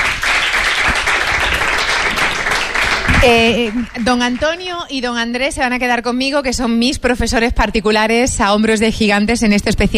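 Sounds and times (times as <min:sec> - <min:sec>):
audience applause: 0:00.0 - 0:04.8
speech: 0:03.2 - 0:09.9.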